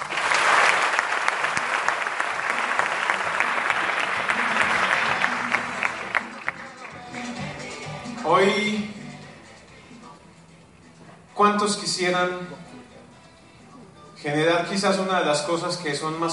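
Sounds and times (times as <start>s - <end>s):
audience applause: 0.0s - 7.0s
speech: 11.6s - 12.6s, 14.2s - 16.3s.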